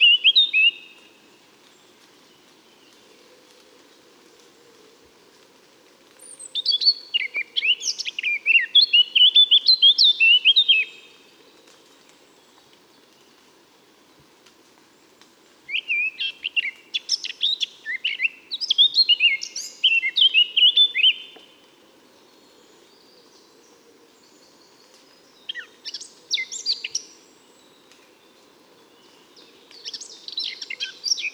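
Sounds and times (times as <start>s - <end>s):
Eurasian blackcap song: 6.2s - 11.2s, 15.7s - 21.5s, 24.2s - 27.7s, 28.9s - 31.3s.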